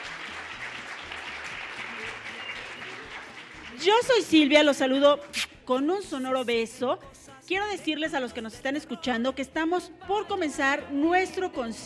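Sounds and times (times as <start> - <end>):
faint murmur of voices: 0.0 - 3.8
audience applause: 0.0 - 4.2
speech: 3.8 - 11.8.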